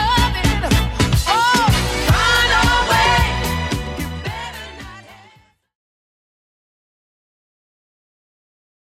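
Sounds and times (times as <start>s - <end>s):
1970s style drum beat: 0.0s - 4.5s.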